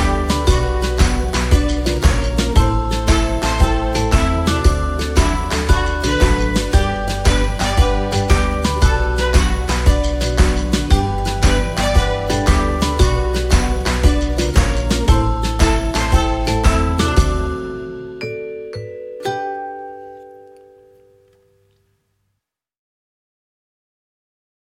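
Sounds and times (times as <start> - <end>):
slow rolls music: 0.0 - 18.2.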